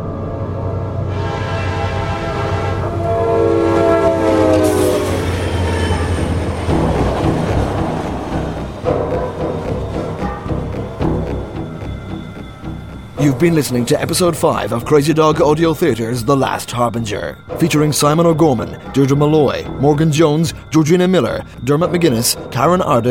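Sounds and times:
train running along tracks: 0:00.1 - 0:23.0
train horn blasts: 0:01.0 - 0:07.9
speech: 0:13.4 - 0:23.0.

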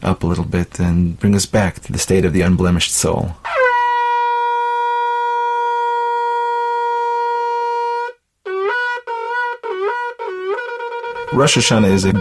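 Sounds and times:
speech: 0:00.1 - 0:03.6, 0:11.4 - 0:12.2
shofar being blown: 0:03.4 - 0:12.2.

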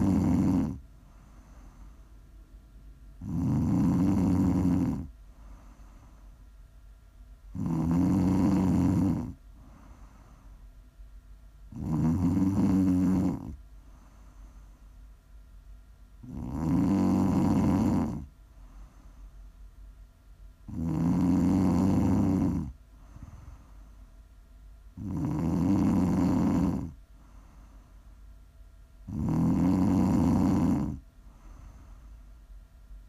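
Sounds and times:
snoring: 0:00.0 - 0:01.9, 0:03.2 - 0:06.2, 0:07.5 - 0:10.5, 0:11.7 - 0:14.6, 0:16.2 - 0:19.1, 0:20.7 - 0:23.8, 0:25.0 - 0:27.6, 0:29.0 - 0:32.1.

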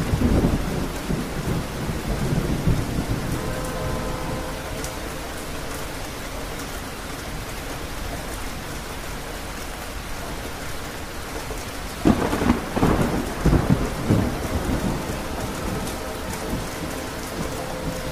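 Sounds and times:
thunder rumbling: 0:00.0 - 0:08.7, 0:10.2 - 0:18.1
rain on the roof of a mountain getaway: 0:00.0 - 0:18.1
train horn: 0:01.7 - 0:07.5, 0:12.2 - 0:18.1.

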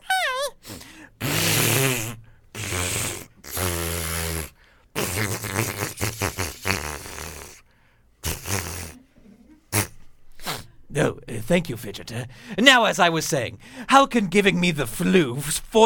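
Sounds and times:
person blowing nose into a napkin: 0:00.5 - 0:07.6, 0:08.2 - 0:09.0, 0:09.7 - 0:10.7
speech: 0:11.0 - 0:15.8.

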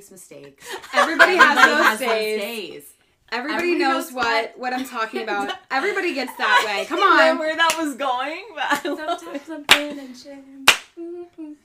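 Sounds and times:
speech: 0:00.0 - 0:11.6
laughter: 0:00.7 - 0:02.4
hand clapping: 0:07.6 - 0:07.9, 0:09.7 - 0:10.0, 0:10.6 - 0:11.0.

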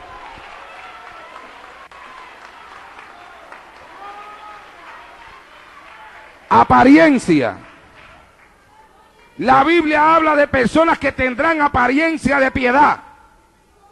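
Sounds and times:
audience applause: 0:00.0 - 0:08.6
speech: 0:06.5 - 0:07.7, 0:09.4 - 0:13.0.

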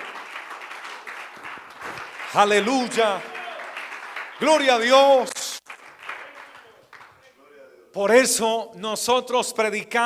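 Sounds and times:
audience applause: 0:00.0 - 0:07.2
speech: 0:02.3 - 0:03.3, 0:04.4 - 0:05.4, 0:07.9 - 0:10.0.

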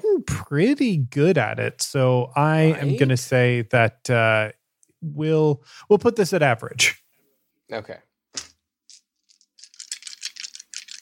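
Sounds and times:
speech: 0:00.5 - 0:07.0, 0:07.7 - 0:08.1
dice rattling: 0:08.4 - 0:11.0.

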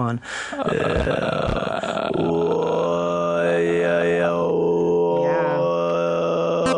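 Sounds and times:
rough grunting: 0:00.6 - 0:03.0
person imitating throat singing with a buzzing vocal drone: 0:00.6 - 0:06.7.

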